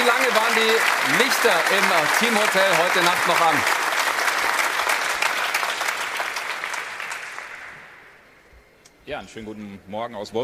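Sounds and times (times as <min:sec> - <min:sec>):
training spectators applauding encouragingly: 0:00.0 - 0:08.1
speech: 0:00.6 - 0:03.8, 0:09.1 - 0:10.4.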